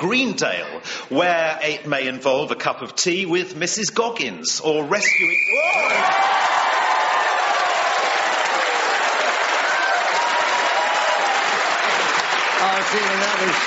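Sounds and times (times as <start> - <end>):
speech: 0.0 - 6.9, 12.7 - 13.6
faint cheers: 5.1 - 12.1
crowd applauding: 5.6 - 13.6.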